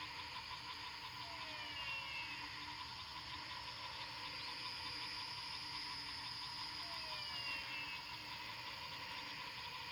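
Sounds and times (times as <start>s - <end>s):
frogs calling at night after rain in Fortín Arce, Luque, Paraguay: 0.0s - 9.9s.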